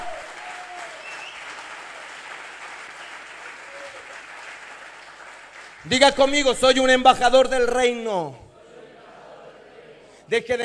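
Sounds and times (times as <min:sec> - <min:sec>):
audience applauding: 0:00.0 - 0:07.0
speech: 0:05.8 - 0:08.4, 0:10.3 - 0:10.6.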